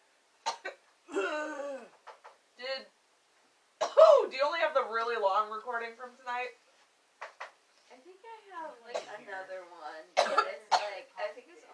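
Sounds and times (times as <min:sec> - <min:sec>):
coughing: 0:00.4 - 0:02.0, 0:03.8 - 0:04.3, 0:08.9 - 0:09.2, 0:10.2 - 0:11.0
speech: 0:05.0 - 0:06.6.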